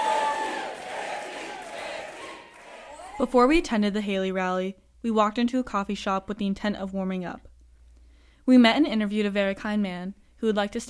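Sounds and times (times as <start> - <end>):
rally crowd roaring with cheers: 0.0 - 3.4
speech: 3.2 - 7.5, 8.5 - 10.8.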